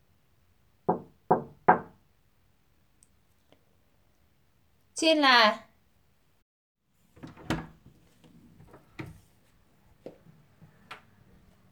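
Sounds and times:
knocking on a door: 0.9s - 2.0s
speech: 5.0s - 5.7s.

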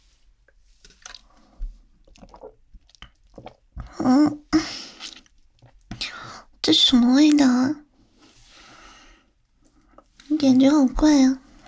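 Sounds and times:
someone slurping and swallowing a drink brewed by the shop: 0.9s - 6.0s
speech: 4.1s - 4.4s, 6.9s - 7.8s, 10.4s - 11.4s.

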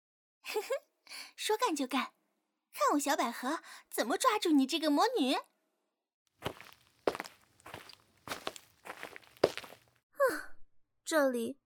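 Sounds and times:
speech: 0.5s - 2.2s, 2.8s - 5.5s, 11.1s - 11.6s
footsteps scuffing: 6.4s - 9.9s.

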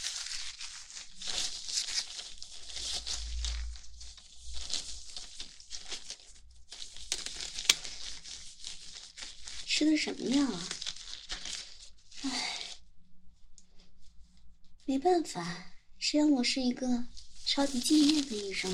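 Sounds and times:
plastic or fabric crinkling and rustling while taking gloves from a drawer: 0.0s - 12.9s, 17.0s - 18.7s
speech: 9.8s - 10.8s, 14.9s - 18.7s.

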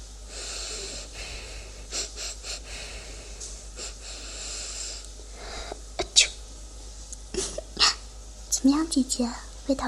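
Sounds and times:
person sniffing: 0.3s - 5.0s
speech: 8.6s - 9.8s.

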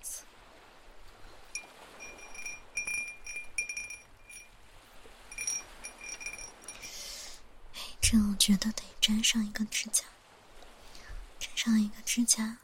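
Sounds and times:
wind chime cup clinking: 1.5s - 4.6s, 5.3s - 7.1s
speech: 8.1s - 10.2s, 11.6s - 12.6s.

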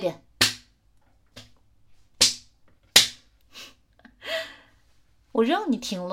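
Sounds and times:
speech: 0.0s - 0.3s, 5.4s - 6.1s
person slapping own face: 0.4s - 0.7s, 2.2s - 3.2s.

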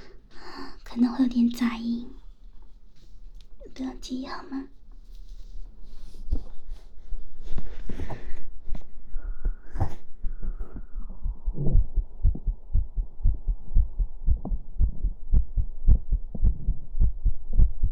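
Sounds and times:
speech: 1.0s - 2.2s, 3.8s - 4.8s
heartbeat: 6.3s - 17.9s.

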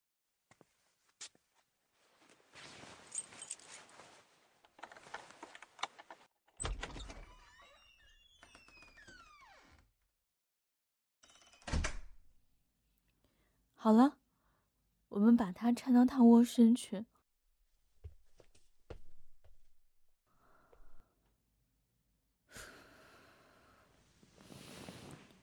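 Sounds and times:
front door creaking open: 6.6s - 10.0s, 11.2s - 12.2s
speech: 13.8s - 14.2s, 15.4s - 17.1s.

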